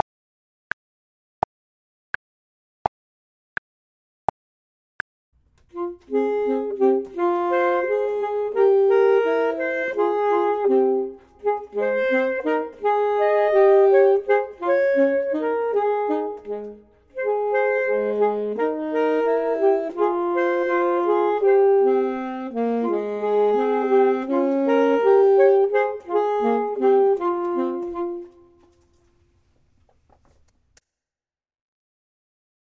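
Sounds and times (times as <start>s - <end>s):
saxophone: 5.7s - 29.2s
clarinet: 5.7s - 29.4s.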